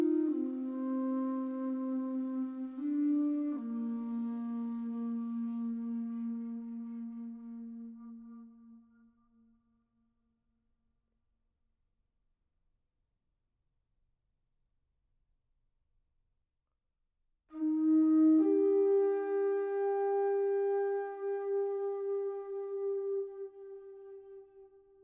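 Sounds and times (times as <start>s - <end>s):
meditative music: 0.0s - 10.0s, 17.5s - 25.0s.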